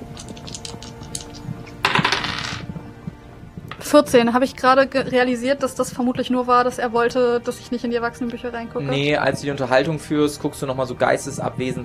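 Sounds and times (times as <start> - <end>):
dice clattering on a hard surface: 0.2 - 2.6
speech: 3.9 - 11.8.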